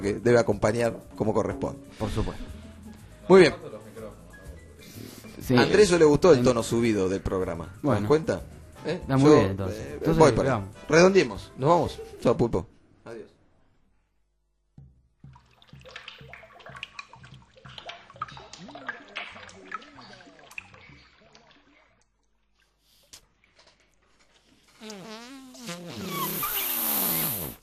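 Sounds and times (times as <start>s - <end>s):
speech: 0.0s - 2.6s, 3.3s - 3.7s, 5.4s - 13.3s
wet bubbling fart sounds in a farting contest: 15.2s - 22.0s, 24.4s - 27.6s.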